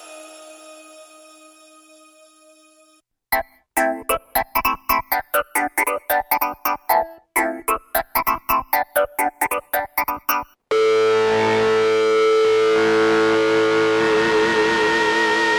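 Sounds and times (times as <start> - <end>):
synthesizer preset: 3.3 - 15.4.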